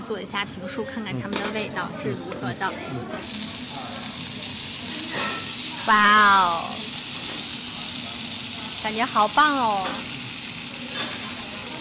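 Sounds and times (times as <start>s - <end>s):
speech: 0.1s - 3.6s, 5.9s - 6.7s, 8.8s - 10.2s
spicy beef sizzling on a hot plate: 3.2s - 11.7s.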